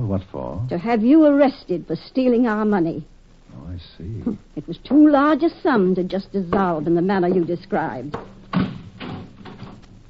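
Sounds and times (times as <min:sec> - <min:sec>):
speech: 0:00.1 - 0:08.7
door being locked: 0:08.5 - 0:09.9.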